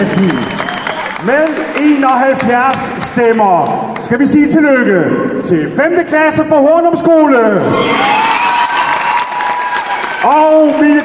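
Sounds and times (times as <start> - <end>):
speech: 0.0 - 0.6, 1.2 - 8.3, 10.2 - 11.0
crowd applause and cheering for a school team at a North Jutland packed-lunch contest: 0.0 - 3.8, 7.6 - 11.0.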